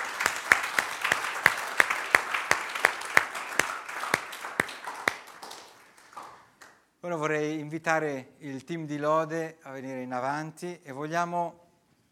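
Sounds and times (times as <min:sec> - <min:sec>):
audience applause: 0:00.0 - 0:06.8
speech: 0:07.1 - 0:11.6.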